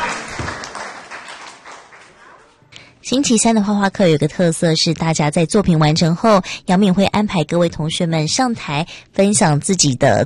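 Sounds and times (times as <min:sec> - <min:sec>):
audience clapping: 0:00.0 - 0:02.7
speech: 0:03.1 - 0:10.2.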